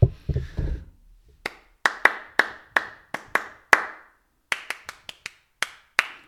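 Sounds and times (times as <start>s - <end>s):
person clapping hands: 1.4s - 6.2s.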